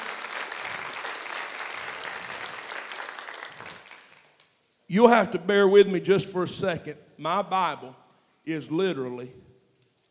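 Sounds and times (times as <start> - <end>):
church congregation applauding visitors: 0.0 - 4.6
speech: 4.9 - 9.5.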